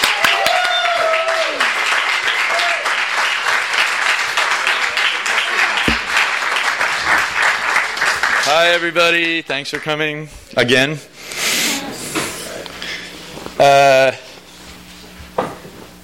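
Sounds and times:
audience applause welcoming an author at a bookstore reading: 0.0 - 10.0
speech: 8.5 - 11.1, 13.6 - 14.2.

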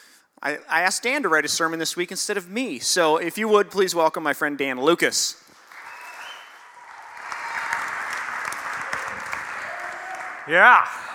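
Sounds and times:
speech: 0.4 - 5.4, 10.5 - 11.1
crowd applause: 5.6 - 11.1
whoops and cheers: 5.8 - 11.1.

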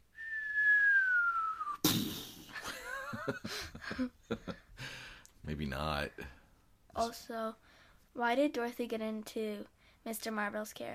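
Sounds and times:
person whistling a falling tone mimicking an incoming mortar: 0.1 - 1.9
speech: 3.2 - 4.7, 5.5 - 10.9.

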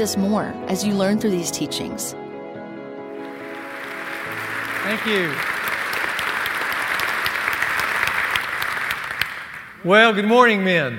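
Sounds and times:
speech: 0.0 - 2.2, 4.8 - 5.6, 9.8 - 10.9
audience applause: 3.2 - 10.9.

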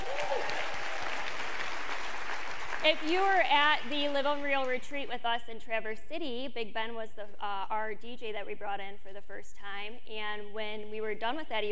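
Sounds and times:
group of people clapping: 0.0 - 4.8
speech: 2.8 - 11.7.

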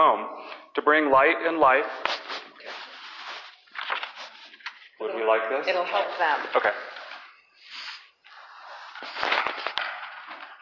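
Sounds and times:
speech: 0.0 - 2.1, 5.0 - 6.9
paper crinkling and rustling: 2.0 - 4.8, 6.9 - 10.5.

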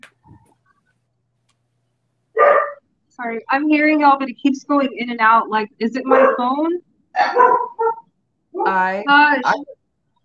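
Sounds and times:
dogs barking: 2.4 - 2.8, 6.1 - 6.6, 7.2 - 8.8
speech: 3.2 - 8.0, 8.6 - 9.8.

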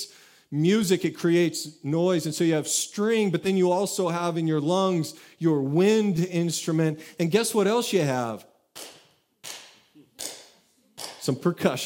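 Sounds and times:
speech: 0.5 - 8.9, 11.2 - 11.8
sarcastic hand clap: 8.7 - 11.5.

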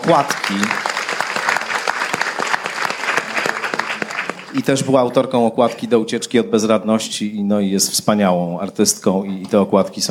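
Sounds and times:
audience applause: 0.0 - 5.0
speech: 0.1 - 0.8, 4.5 - 10.0.

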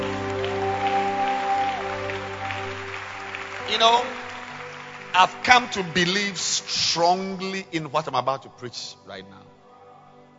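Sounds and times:
audience clapping: 0.0 - 7.6
organ or keyboard chords: 0.0 - 9.6
speech: 3.7 - 4.2, 5.2 - 9.6.

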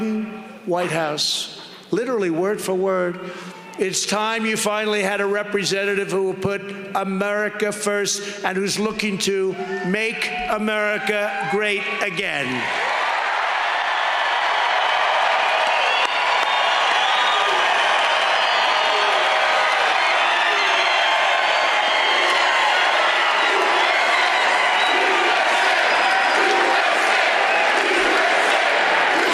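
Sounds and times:
speech: 0.7 - 12.9
large rally crowd cheering: 10.5 - 29.3
scattered shouts: 17.4 - 29.3.

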